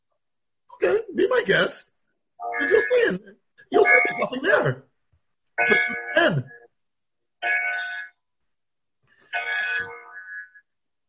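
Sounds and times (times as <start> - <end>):
speech: 0.8 - 4.9, 5.6 - 6.6
clock chiming the hour with bell-like tones: 2.4 - 4.7, 5.6 - 6.7, 7.4 - 8.2, 9.3 - 10.6.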